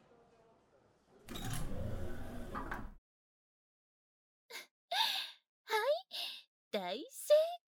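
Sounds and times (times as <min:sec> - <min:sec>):
automatic sliding door opening with mechanical whir: 0:01.3 - 0:03.0
speech: 0:06.8 - 0:07.4.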